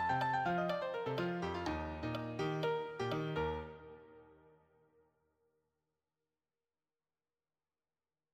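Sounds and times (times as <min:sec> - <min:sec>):
solo piano: 0:00.0 - 0:04.4.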